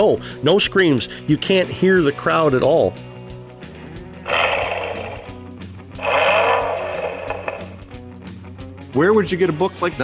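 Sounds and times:
speech: 0.0s - 3.1s, 9.0s - 10.0s
Ford Mustang car engine: 4.3s - 5.4s, 6.0s - 7.8s.

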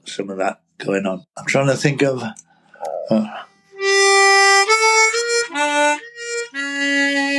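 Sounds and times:
speech: 0.0s - 2.4s, 3.1s - 3.5s
harmonica playing a smooth legato melody: 3.0s - 7.3s.

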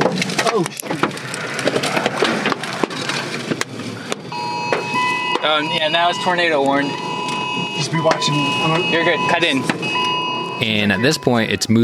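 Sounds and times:
large hail hitting a vehicle: 0.0s - 5.6s
speech: 0.6s - 1.0s, 5.4s - 7.0s, 7.8s - 10.0s, 10.6s - 11.8s.

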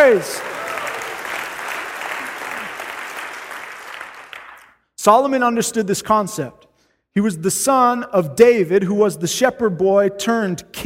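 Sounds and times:
speech: 0.0s - 0.5s, 5.0s - 10.8s
audience clapping: 0.0s - 4.8s.

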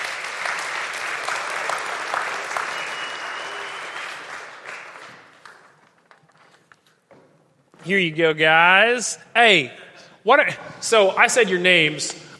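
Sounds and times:
audience applause: 0.0s - 6.4s
speech: 7.9s - 12.3s.

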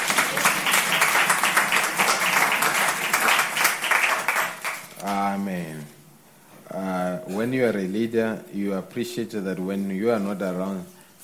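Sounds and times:
crowd applause: 0.0s - 5.1s
speech: 6.7s - 11.2s.

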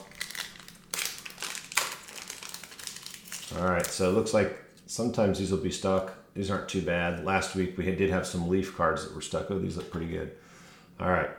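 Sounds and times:
wax pack of trading cards wrapper tearing: 0.0s - 4.1s
speech: 3.5s - 11.3s.

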